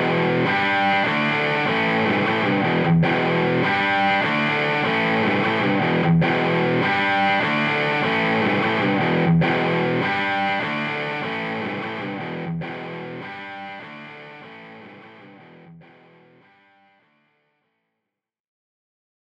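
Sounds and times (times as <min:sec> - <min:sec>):
overdriven electric guitar bridge pickup: 0:00.0 - 0:17.2.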